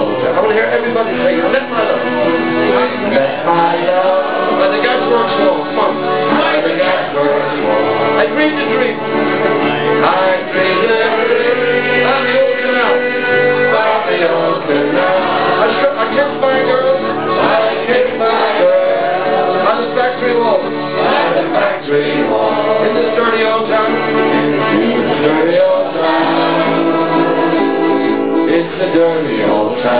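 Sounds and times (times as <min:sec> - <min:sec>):
pub musicians playing: 0:00.0 - 0:29.9.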